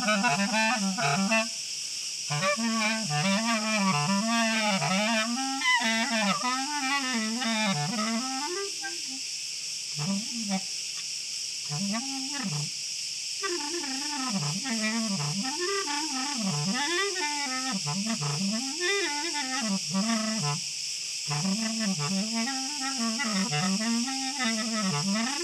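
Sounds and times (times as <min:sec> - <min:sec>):
crickets chirping: 0:00.0 - 0:25.4.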